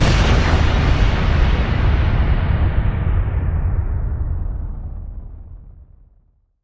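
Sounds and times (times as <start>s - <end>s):
big boomy impact: 0.0s - 6.0s.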